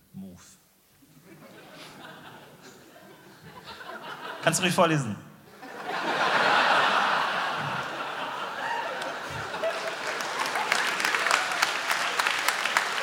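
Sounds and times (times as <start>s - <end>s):
laughter: 1.2s - 4.6s, 5.5s - 13.0s
speech: 4.4s - 5.3s
clapping: 8.9s - 13.0s.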